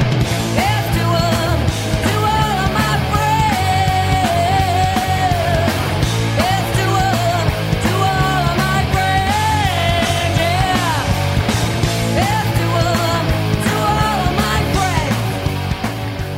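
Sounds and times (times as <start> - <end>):
raw rock song with woman singing over guitars, bass and drums: 0.0 - 16.3.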